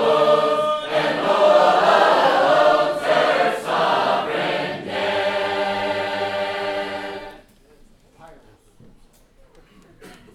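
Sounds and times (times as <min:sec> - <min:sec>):
Sacred Harp shape-note choir singing: 0:00.0 - 0:07.5.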